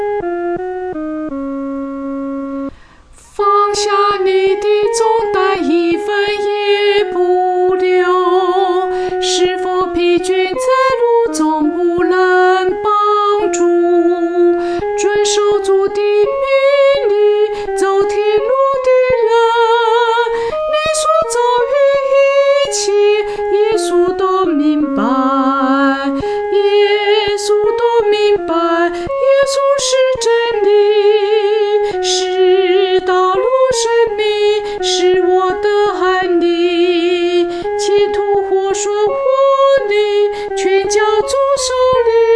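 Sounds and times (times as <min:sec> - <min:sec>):
solo singing: 0:00.2 - 0:42.3.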